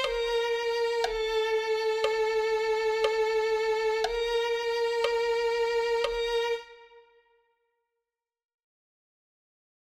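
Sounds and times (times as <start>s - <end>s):
violin: 0.0s - 7.5s.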